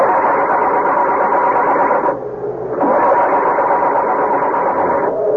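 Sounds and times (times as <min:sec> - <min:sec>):
crashed car engine being started: 0:00.0 - 0:05.2.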